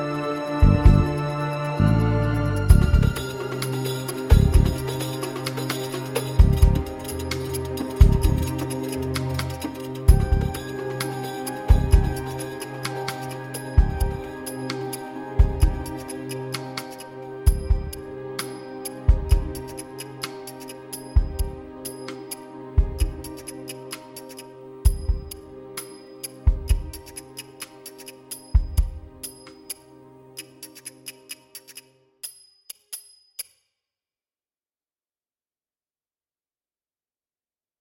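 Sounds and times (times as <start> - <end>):
drums: 0.6 - 29.8.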